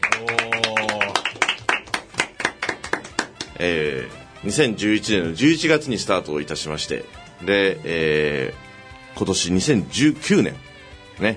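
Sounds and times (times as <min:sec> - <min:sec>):
few people clapping in a studio: 0:00.0 - 0:03.6
speech: 0:03.6 - 0:08.6, 0:09.2 - 0:11.3.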